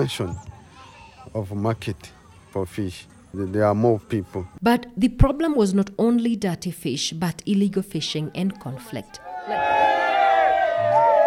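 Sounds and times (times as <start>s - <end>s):
speech: 0.0s - 0.5s, 1.3s - 10.0s
crowd chanting as boat arrives ashore: 9.2s - 11.2s.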